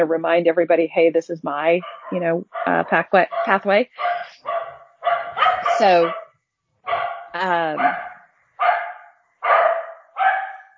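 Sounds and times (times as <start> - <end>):
speech: 0.0 - 4.3, 5.8 - 6.2, 7.4 - 8.1
dogs barking at bears on the porch: 1.8 - 6.3, 6.9 - 10.7.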